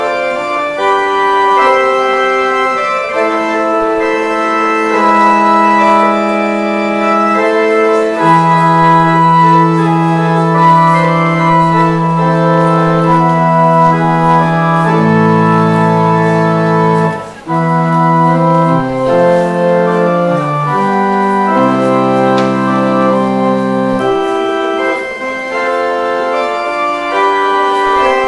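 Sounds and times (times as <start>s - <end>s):
organ exit music: 0.0s - 28.2s.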